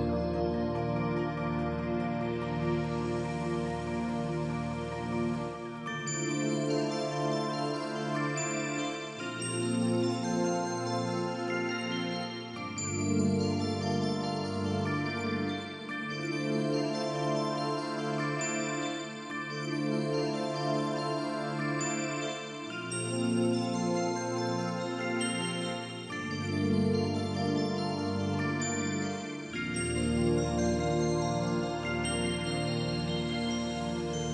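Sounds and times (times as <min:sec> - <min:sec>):
bells ringing: 0:00.2 - 0:34.2.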